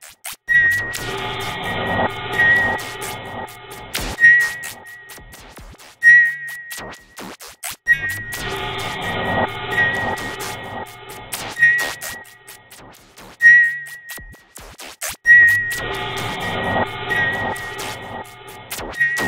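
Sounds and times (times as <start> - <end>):
beeps with echoes: 0.5 - 7.1, 7.9 - 12.7, 13.4 - 14.4, 15.2 - 19.2.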